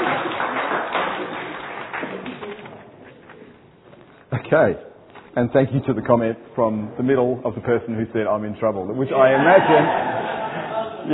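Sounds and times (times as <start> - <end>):
audience clapping: 0.0 - 3.3
speech: 4.5 - 10.2
laughter: 9.1 - 11.1.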